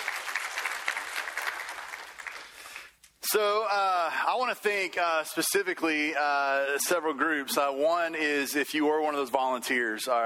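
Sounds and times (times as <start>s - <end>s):
audience applause: 0.0s - 2.9s
speech: 3.3s - 10.2s.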